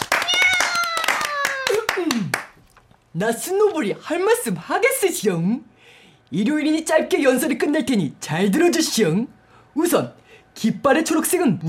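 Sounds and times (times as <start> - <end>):
group clapping: 0.0 - 2.9
speech: 3.1 - 5.7, 6.3 - 11.6.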